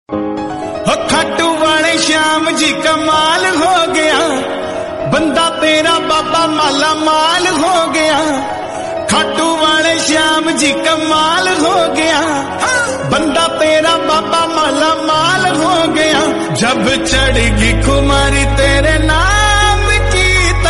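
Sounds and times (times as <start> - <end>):
Hindi bhakti devotional ringtone music: 0.1 - 20.6.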